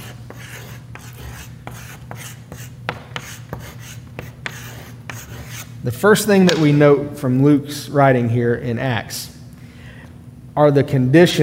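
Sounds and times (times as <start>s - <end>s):
words being written on a board: 0.0s - 5.7s
low steady hum: 0.0s - 11.4s
speech: 5.8s - 9.3s, 10.6s - 11.4s.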